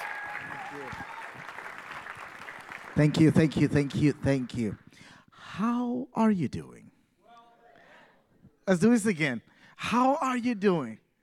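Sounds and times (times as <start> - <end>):
audience applause: 0.0 - 3.9
speech: 0.7 - 1.2, 3.0 - 6.9, 8.7 - 11.0.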